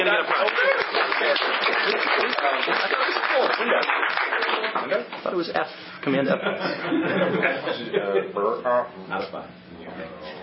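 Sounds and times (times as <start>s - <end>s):
round of applause: 0.0s - 5.0s
speech: 0.1s - 10.4s
laughter: 6.3s - 8.4s.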